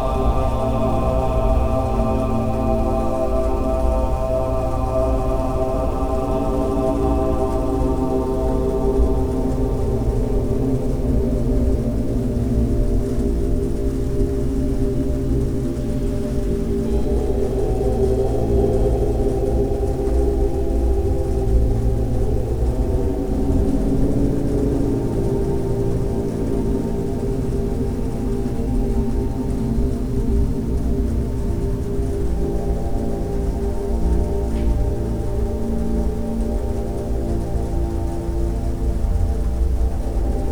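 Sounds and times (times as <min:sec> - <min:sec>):
relaxing music for meditation: 0:00.0 - 0:40.5.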